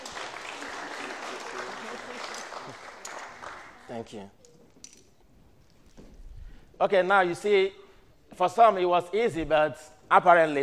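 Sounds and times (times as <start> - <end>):
audience applause: 0.0 - 4.0
speech: 3.9 - 4.4, 6.8 - 10.6.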